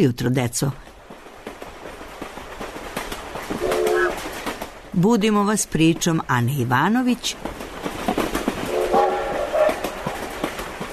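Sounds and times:
speech: 0.0 - 0.9, 5.0 - 7.6
train wheels clattering on rails: 0.9 - 10.9
train horn: 3.6 - 4.2, 8.7 - 10.1.

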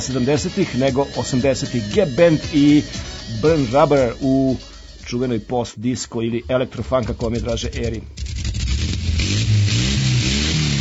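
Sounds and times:
speech: 0.0 - 8.5
car engines roaring and revving: 8.2 - 10.7.

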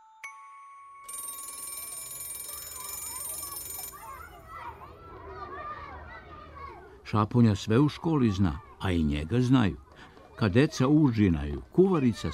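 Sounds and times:
school bell ringing: 1.0 - 4.6
speech: 7.1 - 9.8, 10.4 - 12.3.

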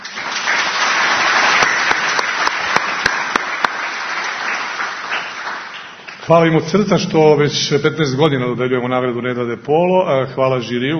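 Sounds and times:
audience applause at an award ceremony: 0.0 - 6.2
sharp evenly spaced claps: 0.0 - 6.3
speech: 6.3 - 10.9.

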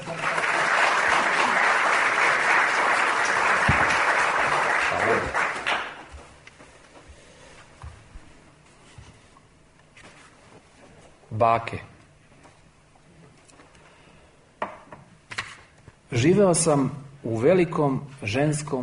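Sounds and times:
audience applause opening a poetry concert: 0.0 - 6.1
speech: 11.4 - 11.9, 16.1 - 18.8.

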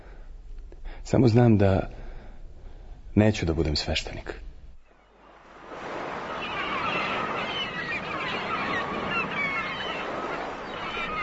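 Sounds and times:
speech: 1.0 - 2.0, 3.2 - 4.5
honking goose-like bird calls: 4.8 - 11.2
waves washing against a sea shore: 4.8 - 11.2.

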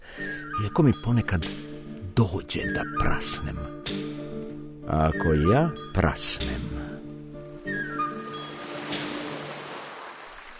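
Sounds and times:
speech: 0.6 - 1.6, 2.2 - 4.2, 4.9 - 6.9
sea waves surging and receding: 7.4 - 10.5
brief high whistling sounds: 7.7 - 9.1.

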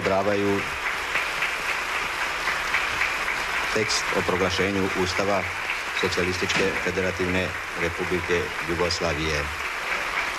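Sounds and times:
sustained applause from parliament members standing: 0.0 - 10.3
speech: 0.1 - 0.8, 3.7 - 9.6.

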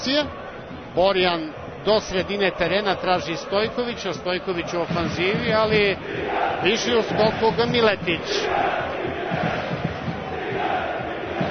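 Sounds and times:
speech: 0.0 - 0.4, 1.0 - 9.5
football fans chanting on both sides of the stadium at a Red Star Belgrade match: 0.0 - 11.4.

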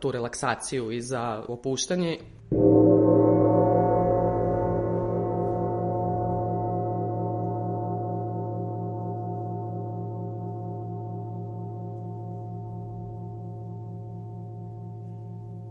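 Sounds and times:
speech: 0.0 - 2.7
gong ringing: 2.5 - 13.9.

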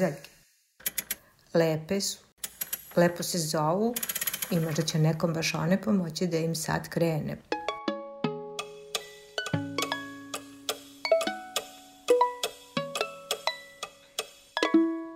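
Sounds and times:
speech: 0.0 - 0.3, 1.5 - 2.3, 3.0 - 7.5
clocks ticking: 8.6 - 14.7.

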